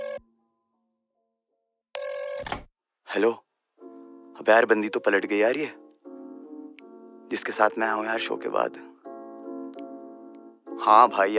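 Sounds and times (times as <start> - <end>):
electronic telephone ring tones while a call is placed: 0.0 - 0.4, 2.0 - 2.5
speech: 2.4 - 3.4, 4.4 - 5.8, 7.3 - 8.9, 10.8 - 11.3.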